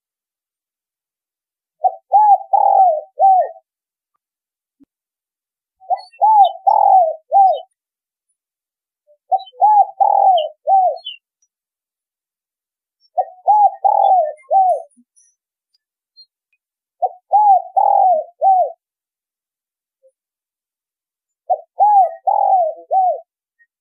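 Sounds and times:
spotted dove cooing: 0:01.8 - 0:03.6, 0:05.8 - 0:07.7, 0:09.3 - 0:11.2, 0:13.2 - 0:14.9, 0:17.0 - 0:18.8, 0:21.5 - 0:23.3.

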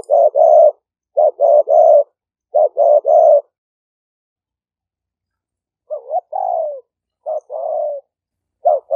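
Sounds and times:
spotted dove cooing: 0:00.0 - 0:03.6, 0:05.8 - 0:08.9.

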